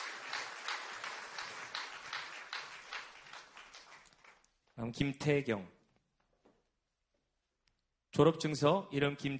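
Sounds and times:
audience applause: 0.0 - 4.5
speech: 4.8 - 5.8, 8.2 - 9.3.

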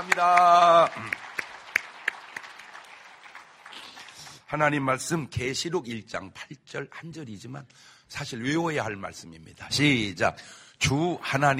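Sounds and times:
speech: 0.0 - 1.2, 4.5 - 11.5
audience applauding in welcome: 0.0 - 4.9.

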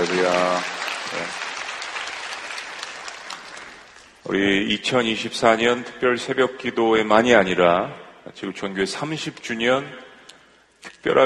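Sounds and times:
speech: 0.0 - 1.4, 4.3 - 10.0, 11.0 - 11.2
audience applause: 0.0 - 4.2.

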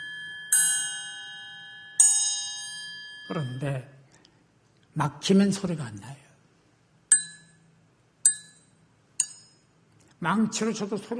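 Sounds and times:
metal triangle struck: 0.0 - 4.0, 7.1 - 9.8
speech: 3.3 - 4.0, 5.0 - 6.2, 10.2 - 11.1.

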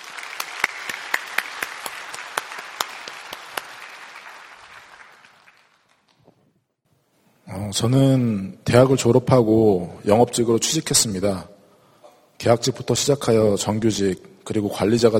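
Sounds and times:
audience applause welcoming a speaker: 0.0 - 6.2
speech: 7.6 - 11.6, 12.4 - 15.1.

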